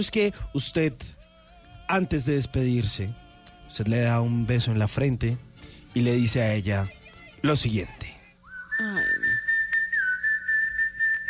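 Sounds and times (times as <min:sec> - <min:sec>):
speech: 0:00.0 - 0:01.2, 0:01.9 - 0:08.1
person whistling an imitation of a dove's song: 0:08.4 - 0:11.2.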